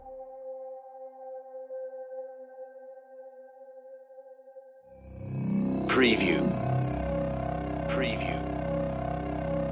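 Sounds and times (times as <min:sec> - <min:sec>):
magnetic turbulence: 0:05.1 - 0:09.7.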